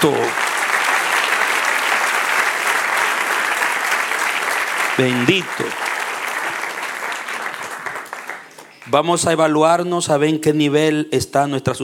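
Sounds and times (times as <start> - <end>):
audience applause: 0.0 - 9.1
speech: 5.0 - 5.9, 8.9 - 11.8.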